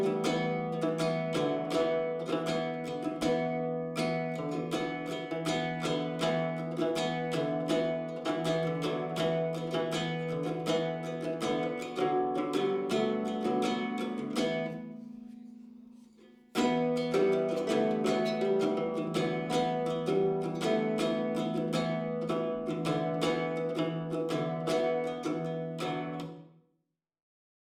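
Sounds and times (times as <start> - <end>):
bard instrumental music: 0.0 - 26.4.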